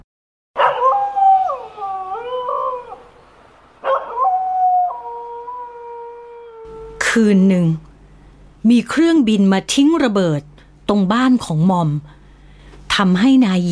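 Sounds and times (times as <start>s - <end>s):
dog howling: 0.6s - 3.2s, 3.8s - 7.0s
speech: 7.1s - 7.9s, 8.6s - 12.2s, 13.0s - 13.7s.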